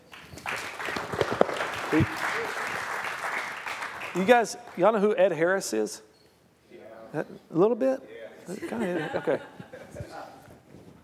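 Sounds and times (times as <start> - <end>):
church congregation applauding to welcome a speaker: 0.0 - 5.0
speech: 1.9 - 2.2, 4.2 - 6.1, 7.1 - 9.6
laughter: 8.5 - 10.4.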